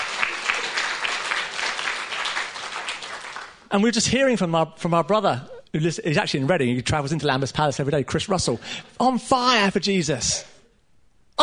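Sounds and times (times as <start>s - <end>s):
audience clapping: 0.0s - 3.7s
speech: 3.7s - 10.5s.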